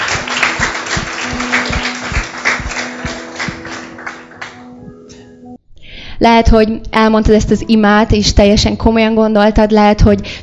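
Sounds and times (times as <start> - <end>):
audience applause: 0.0 - 4.6
speech: 6.2 - 10.4.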